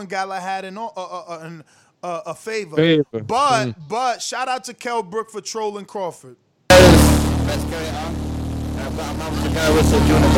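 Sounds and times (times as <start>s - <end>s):
speech: 0.0s - 6.4s, 7.5s - 8.2s, 9.0s - 10.3s
Doom Buggy engine running: 6.7s - 10.3s.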